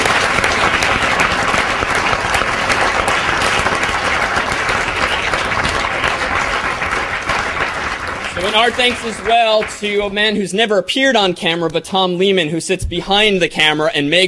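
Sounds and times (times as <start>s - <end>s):
audience applause: 0.0s - 10.4s
speech: 8.6s - 14.2s.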